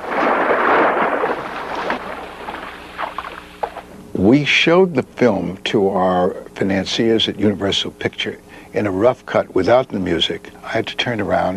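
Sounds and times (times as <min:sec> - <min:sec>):
foley effect of shark emerging from water: 0:00.0 - 0:03.9
speech: 0:04.3 - 0:11.5.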